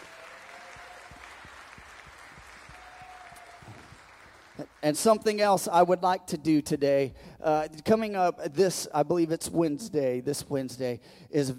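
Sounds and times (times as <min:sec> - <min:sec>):
audience applauding guests in welcome: 0:00.0 - 0:05.0
speech: 0:04.6 - 0:11.5.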